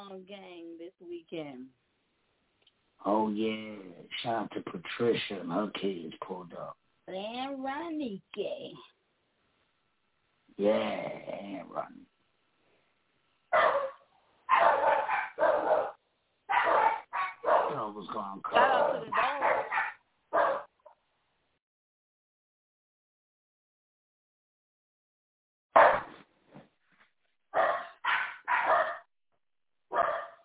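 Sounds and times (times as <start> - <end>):
speech: 0.2 - 1.8, 3.0 - 8.9, 10.6 - 12.1, 13.5 - 13.9, 17.7 - 19.6
dog barking with whiny yipping tones: 13.5 - 17.8, 18.5 - 20.8, 25.8 - 26.2, 27.6 - 29.1, 29.9 - 30.4.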